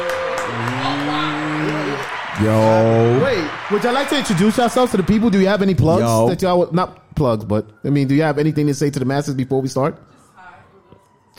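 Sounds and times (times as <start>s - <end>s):
round of applause: 0.0s - 6.3s
speech: 2.4s - 10.1s.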